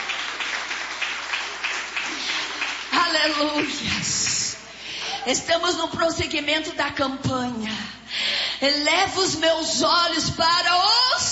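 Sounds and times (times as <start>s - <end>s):
audience clapping hands: 0.0s - 5.2s
speech: 3.2s - 4.3s, 5.2s - 7.9s, 8.6s - 11.3s.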